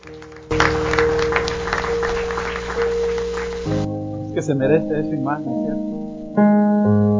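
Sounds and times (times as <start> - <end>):
audience applause: 0.0 - 3.9
speech: 4.5 - 7.1.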